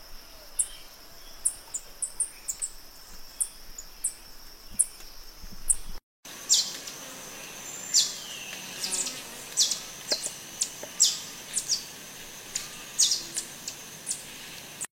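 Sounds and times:
saíra negaça singing: 0.1 - 14.3.

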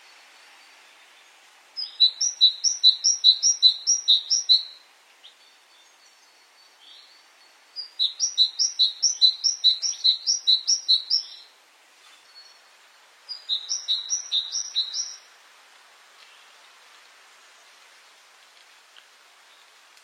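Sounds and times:
great tit song: 1.8 - 11.5, 13.3 - 15.3.

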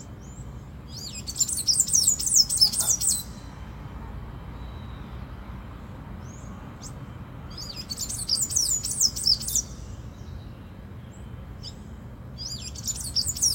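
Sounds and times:
tanager song of thin squeaky high twittering: 0.0 - 3.8, 4.5 - 13.5.

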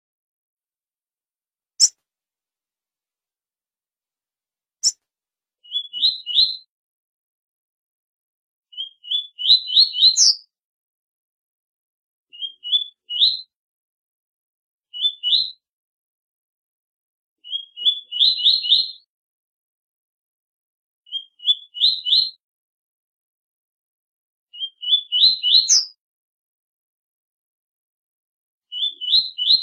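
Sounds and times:
double-collared seedeater singing rising whistled phrases: 5.6 - 6.7, 8.7 - 10.5, 12.3 - 13.5, 14.9 - 15.6, 17.4 - 19.1, 21.1 - 22.4, 24.5 - 26.0, 28.7 - 29.6.

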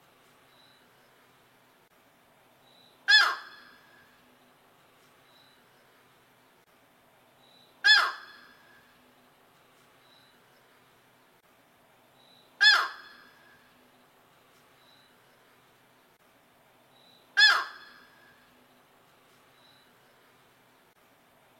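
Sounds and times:
yellow-crowned night heron giving harsh squawks: 3.1 - 3.7, 7.8 - 8.4, 12.6 - 13.2, 17.4 - 18.0.

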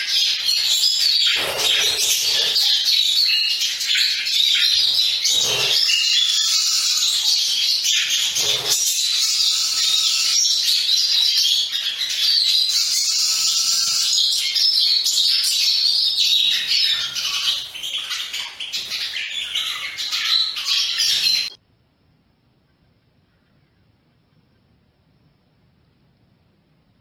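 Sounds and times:
Lawrence's goldfinch song of high chirps and twittered phrases: 0.1 - 21.6.

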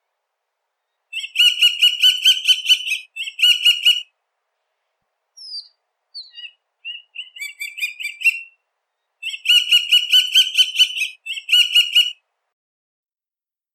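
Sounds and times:
Gavião Carijó hawk calling: 1.1 - 4.1, 5.4 - 8.6, 9.2 - 12.2.

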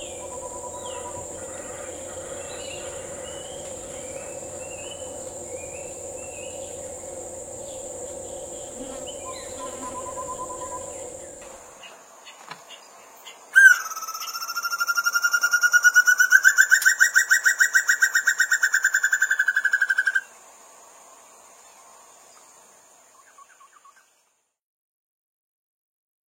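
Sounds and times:
banded broadbill song: 0.0 - 20.3.

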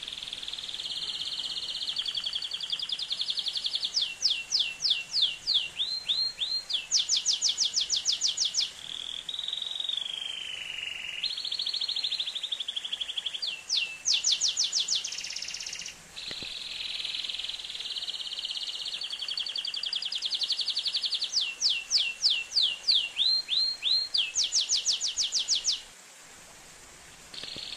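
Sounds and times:
Atlantic canary singing: 0.0 - 25.8.

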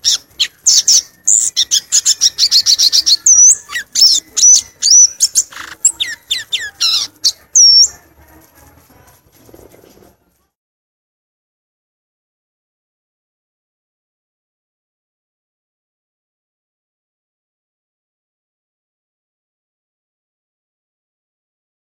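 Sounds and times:
violaceous euphonia song: 0.0 - 8.1.

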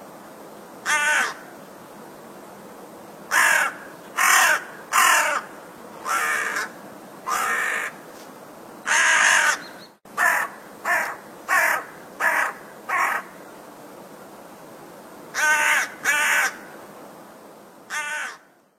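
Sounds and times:
crow cawing: 0.8 - 1.5, 3.3 - 8.0, 8.9 - 13.4, 15.3 - 16.7, 17.9 - 18.6.

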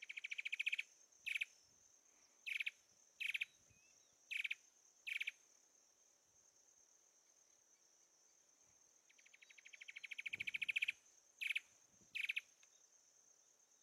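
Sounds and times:
Sincora antwren singing fast series of notes: 0.0 - 1.6, 2.4 - 5.4, 9.1 - 12.8.

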